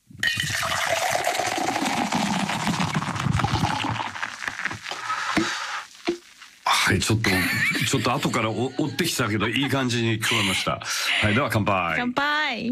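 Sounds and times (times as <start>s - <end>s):
beer poured from a can into a tumbler: 0.2s - 6.7s
beer fizzing: 0.2s - 8.5s
speech: 6.9s - 12.7s
laughter: 7.2s - 11.8s.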